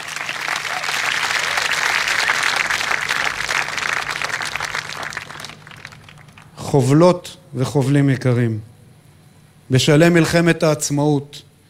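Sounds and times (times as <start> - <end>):
audience applause: 0.0 - 6.6
speech: 6.8 - 8.7, 9.7 - 11.5.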